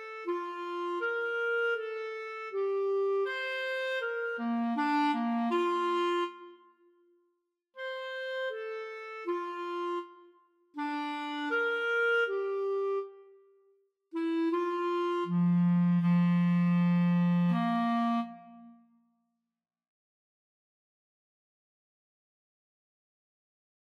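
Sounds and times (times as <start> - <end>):
clarinet duet: 0.0 - 6.8, 7.8 - 13.5, 14.1 - 18.9.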